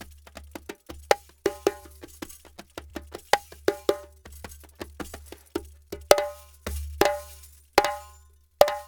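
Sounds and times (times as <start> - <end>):
African djembe: 0.0 - 8.8
kessing drum: 0.0 - 8.8.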